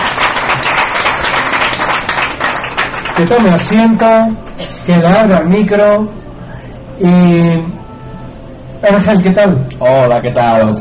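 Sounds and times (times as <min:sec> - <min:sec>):
audience applause welcoming a guest onto a radio talk show: 0:00.0 - 0:03.8
speech: 0:03.2 - 0:06.2, 0:07.0 - 0:07.8, 0:08.8 - 0:10.7.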